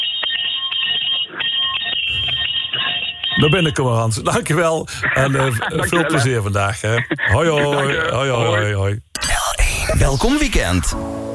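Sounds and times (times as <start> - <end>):
Don Bosco School bell ringing: 0.0 - 4.4
laughter: 2.8 - 8.8
speech: 3.4 - 9.1, 9.9 - 11.2.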